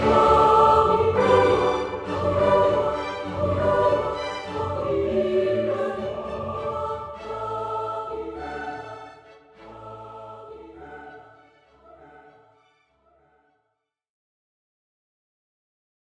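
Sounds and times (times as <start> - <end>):
choir singing an oratorio chorus: 0.0 - 12.6.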